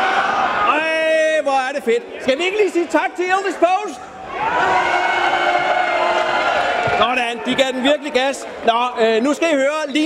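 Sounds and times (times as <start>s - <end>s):
festival crowd cheering and whooping: 0.0s - 1.0s, 2.0s - 9.3s
speech: 1.8s - 5.0s, 7.0s - 10.0s.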